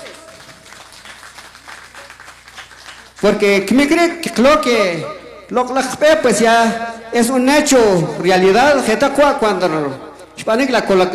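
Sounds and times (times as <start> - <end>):
crowd applauding: 0.0 - 3.6
speech: 3.2 - 11.1.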